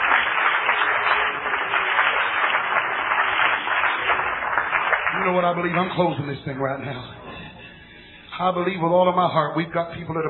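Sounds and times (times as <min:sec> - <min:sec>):
people clapping: 0:00.0 - 0:08.2
speech: 0:05.2 - 0:07.2, 0:08.4 - 0:10.2.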